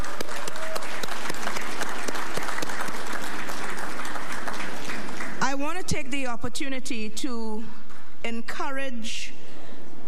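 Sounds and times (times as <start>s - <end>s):
audience applause: 0.0s - 5.4s
speech: 5.9s - 9.4s.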